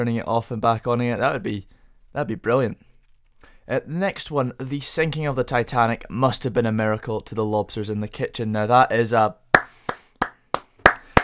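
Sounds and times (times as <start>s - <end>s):
speech: 0.0s - 2.8s, 3.7s - 9.4s
sharp crisp hand claps: 9.6s - 11.2s.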